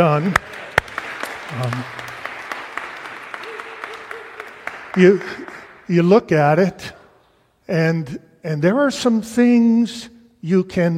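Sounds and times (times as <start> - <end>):
speech: 0.0 - 0.6, 1.5 - 2.1, 5.0 - 7.0, 7.7 - 10.9
audience applause: 0.0 - 6.2.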